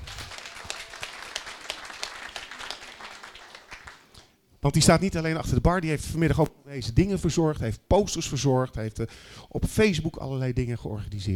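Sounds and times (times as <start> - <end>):
audience applause: 0.0 - 4.1
speech: 4.6 - 11.3.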